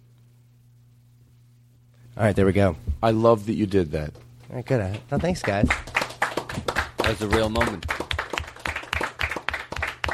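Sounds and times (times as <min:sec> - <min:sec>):
speech: 0:02.1 - 0:05.9, 0:07.1 - 0:08.0
applause from a group of people: 0:04.8 - 0:10.1.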